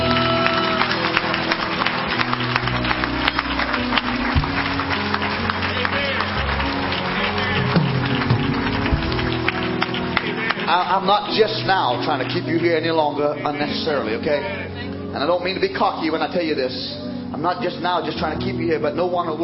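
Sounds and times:
audience hand clapping: 0.0 - 14.6
speech: 10.9 - 14.6, 15.2 - 19.4.

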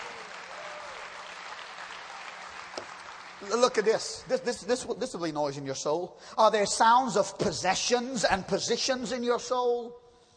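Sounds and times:
audience hand clapping: 0.0 - 4.4
speech: 3.4 - 10.0.

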